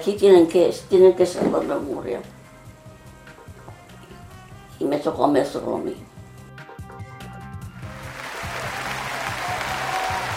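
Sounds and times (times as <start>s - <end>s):
speech: 0.0s - 2.4s, 4.8s - 6.1s
applause: 7.9s - 10.3s.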